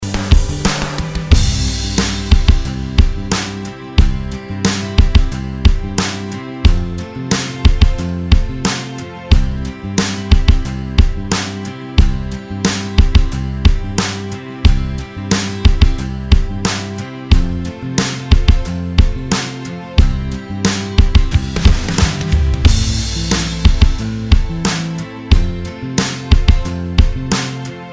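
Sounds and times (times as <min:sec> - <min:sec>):
guitar: 0:00.0 - 0:27.9.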